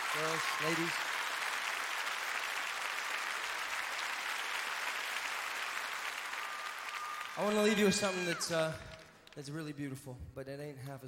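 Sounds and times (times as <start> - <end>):
audience applause: 0.0 - 9.4
speech: 0.2 - 1.2, 7.4 - 11.0.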